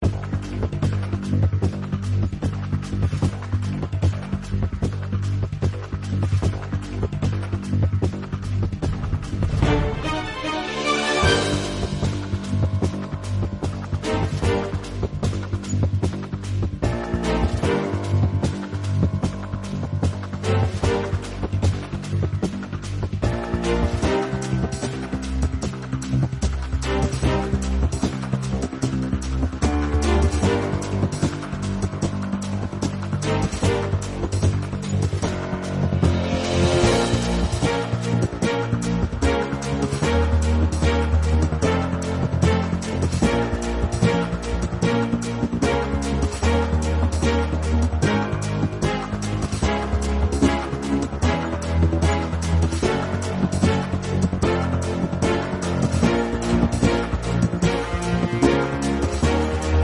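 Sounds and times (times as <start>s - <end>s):
music: 0.0s - 59.8s.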